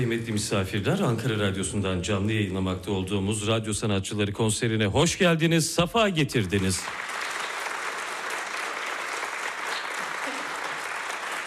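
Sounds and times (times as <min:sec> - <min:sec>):
audience applause at a live radio concert: 0:00.0 - 0:00.8, 0:06.5 - 0:11.4
speech: 0:00.0 - 0:07.2.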